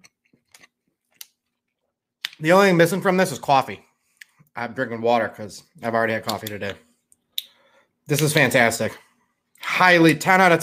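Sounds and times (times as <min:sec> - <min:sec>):
people chewing food while eating: 0:00.0 - 0:01.9
speech: 0:02.4 - 0:03.9, 0:04.6 - 0:06.9, 0:08.1 - 0:09.0, 0:09.6 - 0:10.6.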